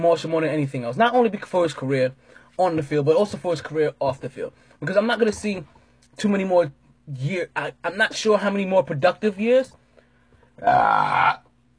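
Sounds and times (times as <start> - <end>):
speech: 0.0 - 9.8, 10.6 - 11.4
loud burp after drinking beer: 10.6 - 11.5.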